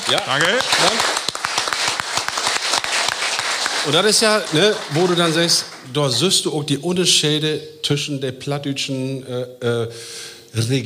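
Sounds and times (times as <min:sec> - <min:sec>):
audience applause: 0:00.0 - 0:06.3
speech: 0:00.1 - 0:01.2, 0:03.8 - 0:10.8.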